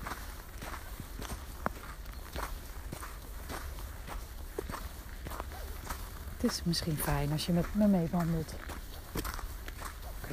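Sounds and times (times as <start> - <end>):
footsteps crunching through snow: 0.0 - 10.3
speech: 6.4 - 8.6.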